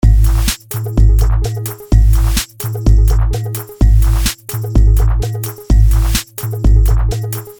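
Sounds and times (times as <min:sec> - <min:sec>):
bass: 0:00.0 - 0:07.5.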